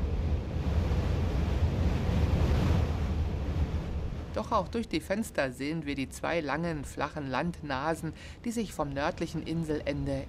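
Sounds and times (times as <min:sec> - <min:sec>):
strong wind roaring around a lighthouse: 0:00.0 - 0:04.9
speech: 0:04.4 - 0:10.2.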